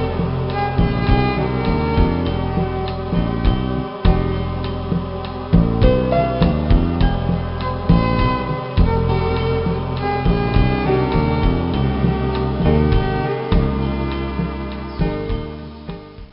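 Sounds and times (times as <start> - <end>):
background music: 0.0 - 16.3.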